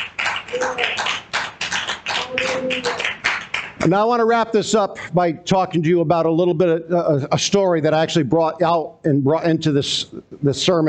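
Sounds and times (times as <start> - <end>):
rapid clapping: 0.0 - 4.0
speech: 0.5 - 1.3, 2.3 - 3.2, 3.8 - 10.8.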